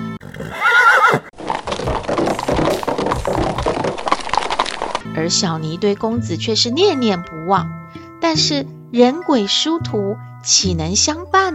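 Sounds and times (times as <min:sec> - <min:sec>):
horse whinnying as its rider sets off: 0:00.2 - 0:05.0
clip-clop hoofbeats of a ridden horse: 0:00.2 - 0:05.7
speech: 0:05.2 - 0:11.5.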